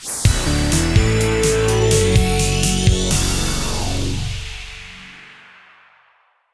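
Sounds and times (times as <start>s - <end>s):
free spin outro music: 0.2s - 5.3s.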